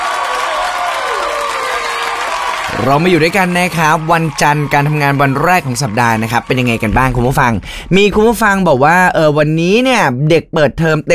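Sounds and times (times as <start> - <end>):
crowd applause: 0.0 - 8.0
faint cheering: 0.0 - 8.3
speech: 2.8 - 11.1.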